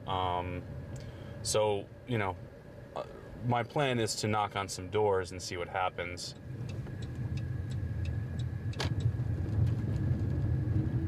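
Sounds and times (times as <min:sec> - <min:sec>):
speech: 0:00.0 - 0:06.9
car driving on a dirt road: 0:06.2 - 0:11.0.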